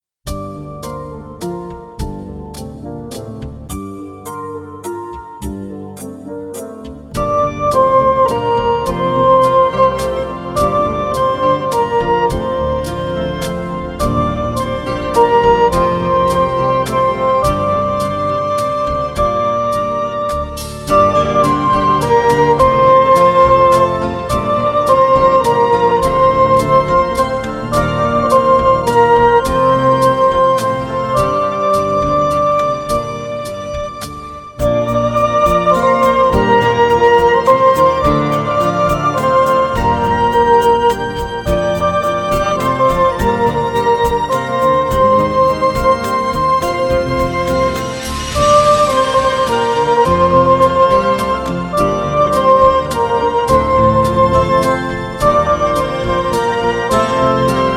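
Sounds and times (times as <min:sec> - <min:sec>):
band playing a melody: 0:07.2 - 0:57.7.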